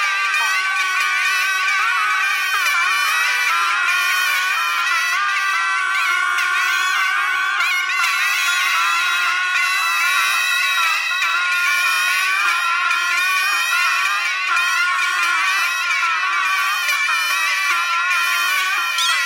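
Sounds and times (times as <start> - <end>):
geese honking: 0.0 - 3.6, 18.8 - 19.2
bagpipe playing: 0.0 - 19.2.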